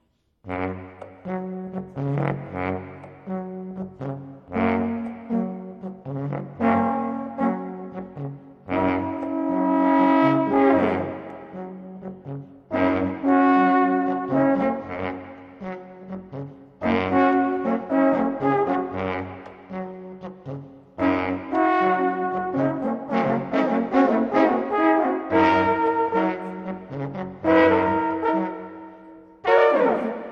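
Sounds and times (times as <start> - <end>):
modern jazzy music: 0.3 - 30.3.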